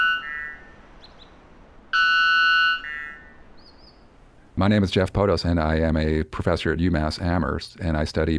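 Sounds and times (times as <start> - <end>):
very loud jungle bird song: 0.2 - 1.4, 2.8 - 4.1
speech: 4.6 - 8.3.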